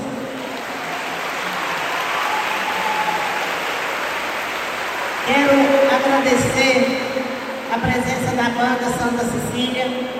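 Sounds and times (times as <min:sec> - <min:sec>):
audience applause: 0:00.0 - 0:05.8
speech: 0:06.1 - 0:07.0, 0:07.7 - 0:10.1.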